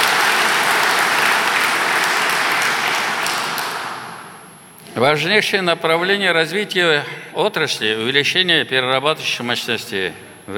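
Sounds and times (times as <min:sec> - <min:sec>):
applause: 0:00.0 - 0:04.4
speech: 0:05.0 - 0:10.5.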